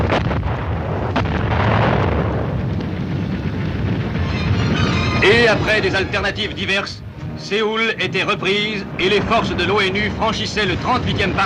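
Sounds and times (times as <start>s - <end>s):
artillery fire: 0.0s - 6.5s
explosions: 0.0s - 7.4s, 9.0s - 11.4s
speech: 5.5s - 11.4s.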